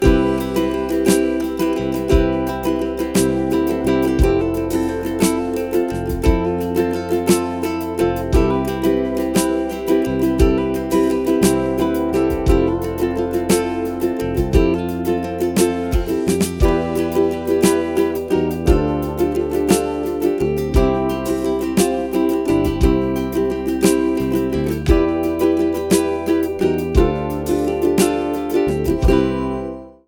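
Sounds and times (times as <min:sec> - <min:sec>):
lazy ukulele strumming without melody: 0:00.0 - 0:30.0.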